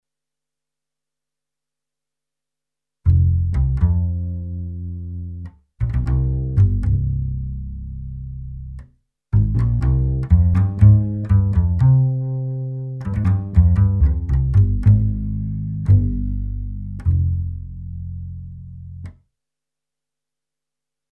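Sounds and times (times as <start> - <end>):
bass: 3.0 - 19.3.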